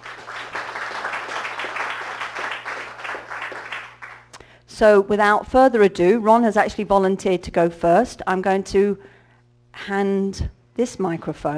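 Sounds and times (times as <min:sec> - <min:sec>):
crowd applauding: 0:00.0 - 0:04.3
faint low electrical hum: 0:00.0 - 0:11.5
speech: 0:04.8 - 0:09.2, 0:09.8 - 0:11.5.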